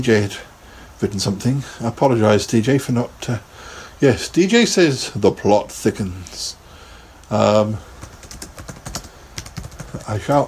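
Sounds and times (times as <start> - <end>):
speech: 0.0 - 6.6, 7.3 - 7.9, 10.1 - 10.4
computer keyboard clicking while typing a reply in an online chat room: 8.0 - 10.4.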